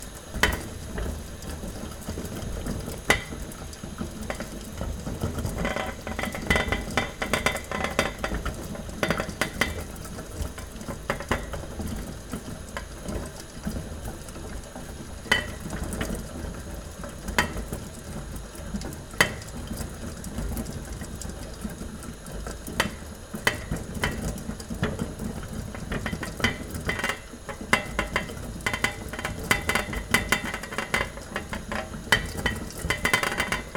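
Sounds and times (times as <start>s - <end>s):
pot boiling slowly: 0.0s - 33.7s.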